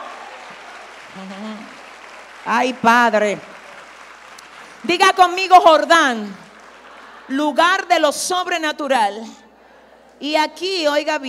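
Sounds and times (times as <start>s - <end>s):
audience applauding: 0.0s - 7.9s
person calling out: 1.2s - 1.7s
speech: 1.2s - 1.8s, 2.4s - 3.5s, 4.8s - 6.4s, 7.3s - 9.4s, 10.2s - 11.2s.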